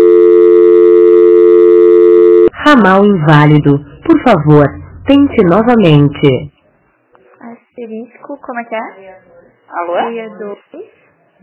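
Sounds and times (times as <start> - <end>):
telephone call transfer tone: 0.0 - 2.5
speech: 2.7 - 6.5, 7.8 - 11.4.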